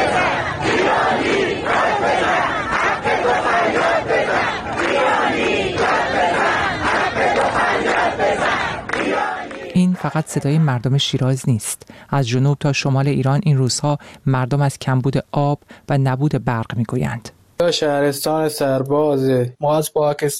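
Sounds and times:
protesters chanting slogans in the street: 0.0s - 10.6s
speech: 10.0s - 20.3s.

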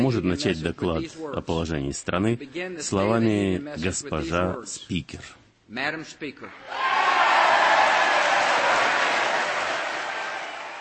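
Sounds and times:
speech: 0.0s - 6.9s
large crowd ovation for the House speaker: 6.7s - 10.7s.

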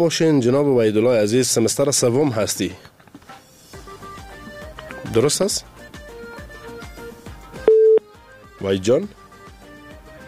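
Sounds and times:
speech: 0.0s - 3.0s, 5.2s - 5.8s, 8.6s - 9.2s
phone line busy tone after a dropped call: 7.6s - 8.1s.

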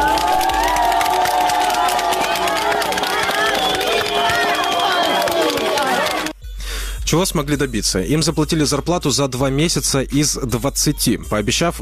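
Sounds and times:
crowd cheering and shouting: 0.0s - 6.3s
applause: 0.0s - 6.4s
speech: 7.1s - 11.8s.

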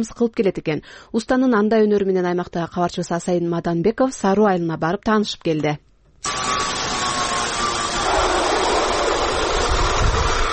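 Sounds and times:
speech: 0.0s - 6.5s
workshop machine tools buzzing in a village craftsman's yard: 6.2s - 10.5s.

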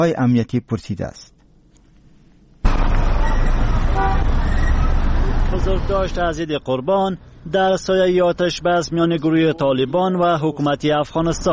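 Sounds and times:
speech: 0.0s - 1.4s, 5.5s - 11.5s
busy city street traffic roar: 2.6s - 11.5s
car horn toots: 2.7s - 5.2s.

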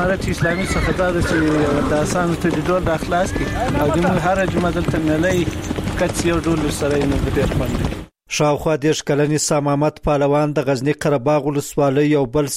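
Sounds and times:
horse hooves clopping at a horse-sport match in Qarabagh district, Ghazni: 0.0s - 8.1s
speech: 0.0s - 12.5s.

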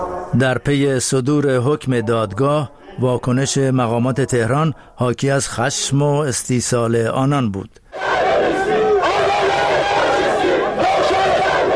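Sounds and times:
speech: 0.0s - 8.1s
crowd of Ansar-e Hezbollah demonstrators shouting outside the German embassy in Tehran: 8.0s - 11.7s.

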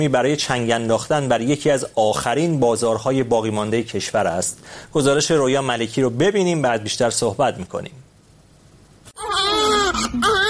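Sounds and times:
speech: 0.0s - 8.1s
baby crying: 9.2s - 10.4s.

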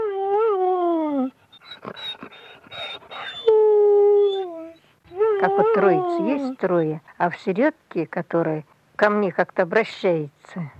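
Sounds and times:
small dog whimpering: 0.0s - 6.6s
speech: 5.5s - 10.7s.

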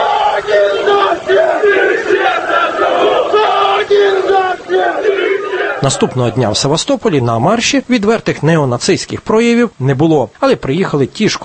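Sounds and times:
large marching crowd shouting in unison: 0.0s - 6.5s
speech: 5.8s - 11.4s.

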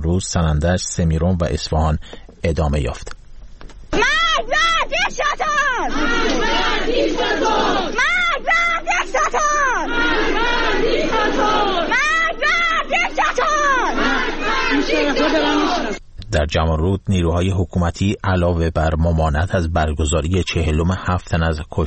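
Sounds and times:
speech: 0.1s - 3.2s, 15.0s - 21.8s
street protest crowd chanting slogans: 4.0s - 16.0s.

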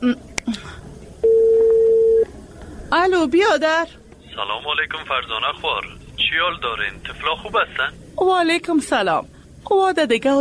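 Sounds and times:
speech: 0.0s - 0.3s, 3.2s - 10.3s
mobile phone dialing beeps: 1.2s - 2.2s.

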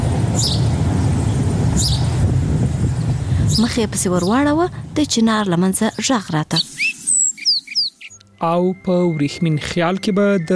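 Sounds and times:
steady low rumble: 0.0s - 5.9s
bird chirping: 0.3s - 2.2s, 5.5s - 10.5s
speech: 0.4s - 0.6s, 3.6s - 6.6s, 8.4s - 10.5s.

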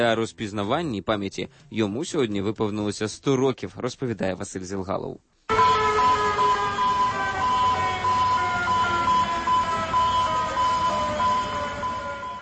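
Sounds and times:
speech: 0.0s - 5.4s
modern distress signal siren at Atlantic seaport of Caracas Venezuela: 5.5s - 12.3s.

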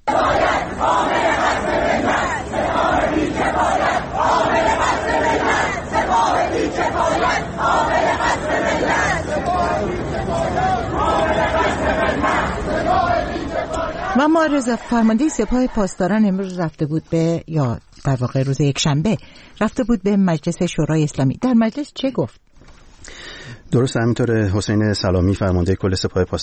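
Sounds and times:
university students chanting slogans in Tehran: 0.0s - 16.2s
speech: 14.2s - 22.4s, 23.1s - 26.4s.

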